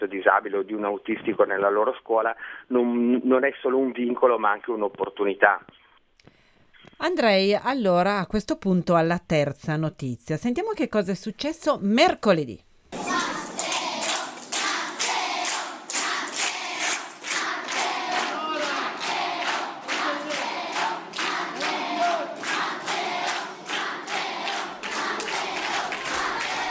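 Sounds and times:
speech: 0:00.0 - 0:05.8, 0:07.0 - 0:12.7
children chanting in chorus stadium-style: 0:12.9 - 0:26.7
clapping: 0:13.1 - 0:26.7.

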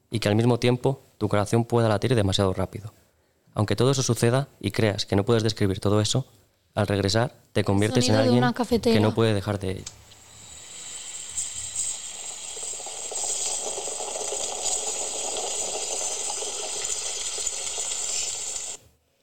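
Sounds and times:
speech: 0:00.1 - 0:03.0, 0:03.6 - 0:10.0
Italian moka pot coffee bubbling up: 0:10.0 - 0:18.8.

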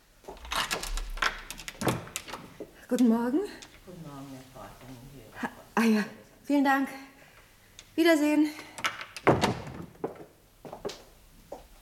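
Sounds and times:
door security chain and latch rattling: 0:00.3 - 0:03.9, 0:08.7 - 0:10.0
speech: 0:02.9 - 0:07.1, 0:08.0 - 0:08.7.

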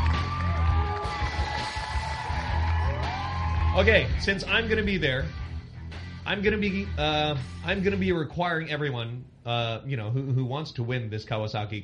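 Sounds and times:
crowd cheering and whooping in excitement after a Kawasaki Curve giveaway: 0:00.0 - 0:04.3
speech: 0:03.8 - 0:05.4, 0:06.3 - 0:11.8.

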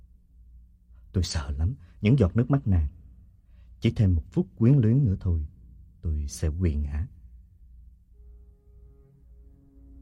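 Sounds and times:
speech: 0:01.2 - 0:03.0, 0:03.8 - 0:07.2
train whistle: 0:08.2 - 0:10.0.

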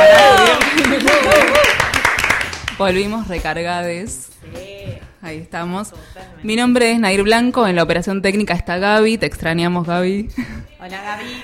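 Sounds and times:
people clapping around a radio studio table: 0:00.0 - 0:03.0
speech: 0:02.8 - 0:11.4.

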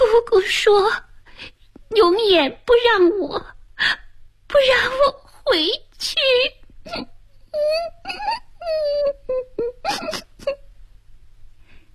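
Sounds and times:
speech: 0:00.1 - 0:10.6
child's low mournful sobbing: 0:06.8 - 0:10.7.

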